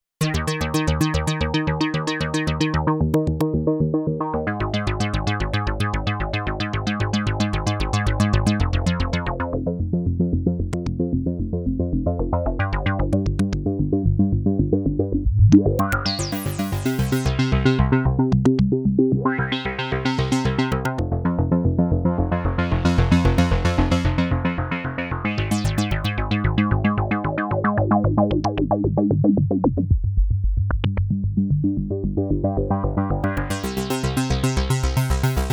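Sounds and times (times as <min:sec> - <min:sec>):
bass line: 0:00.2 - 0:35.5.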